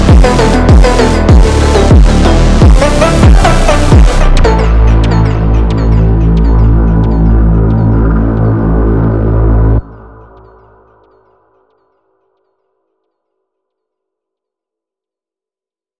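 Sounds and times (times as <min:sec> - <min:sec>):
funk music: 0:00.0 - 0:08.9.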